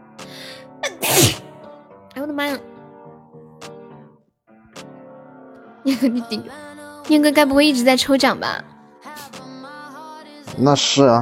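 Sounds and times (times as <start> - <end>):
sneeze: 0.8 - 1.5
speech: 2.2 - 2.7, 5.8 - 9.3, 10.6 - 11.1.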